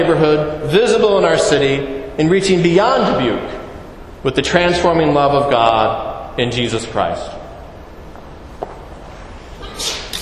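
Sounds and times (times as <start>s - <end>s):
speech: 0.0s - 3.6s, 4.2s - 7.4s
sneeze: 9.6s - 10.2s.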